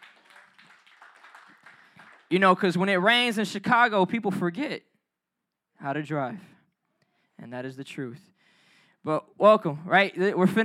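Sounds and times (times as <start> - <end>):
audience hand clapping: 0.0 - 2.7
speech: 2.3 - 4.9, 5.8 - 6.5, 7.4 - 8.3, 9.0 - 10.6.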